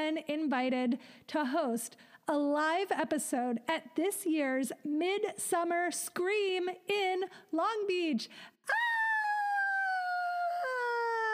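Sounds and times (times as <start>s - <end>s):
speech: 0.0s - 8.9s
person screaming: 8.7s - 11.3s.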